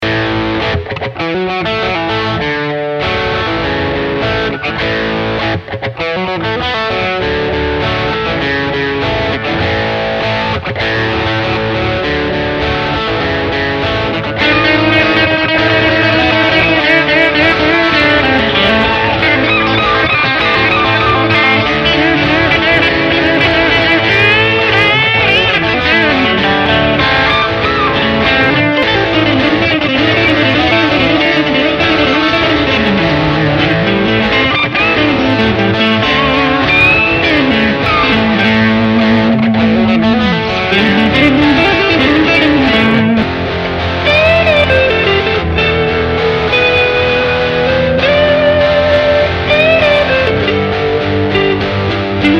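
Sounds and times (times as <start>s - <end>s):
rock music: 0.0s - 52.3s.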